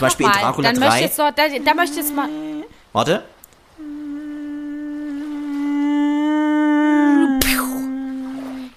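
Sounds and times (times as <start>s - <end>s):
speech: 0.0s - 3.9s
voice imitating a mosquito: 0.7s - 2.8s, 3.8s - 8.7s
sharp slap: 7.4s - 7.8s.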